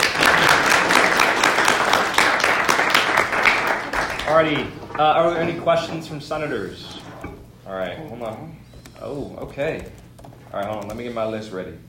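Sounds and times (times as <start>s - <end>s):
crowd clapping: 0.0s - 5.0s
speech: 4.4s - 7.0s, 7.7s - 11.8s.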